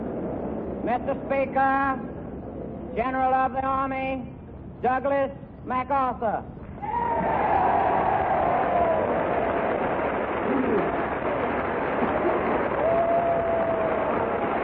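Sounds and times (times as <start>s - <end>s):
speech: 0.8s - 2.1s, 2.9s - 7.4s
applause from a large standing crowd: 6.8s - 14.6s.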